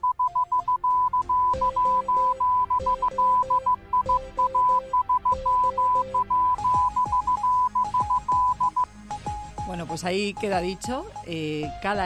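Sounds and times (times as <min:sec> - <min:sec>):
Morse code beeps: 0:00.0 - 0:08.9
speech: 0:09.7 - 0:12.0.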